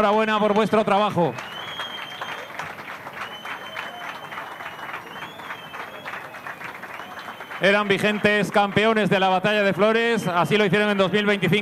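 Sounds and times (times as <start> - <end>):
speech: 0.0 - 1.5, 7.6 - 11.5
crowd applauding and cheering: 0.0 - 9.8
whistles: 0.3 - 8.2.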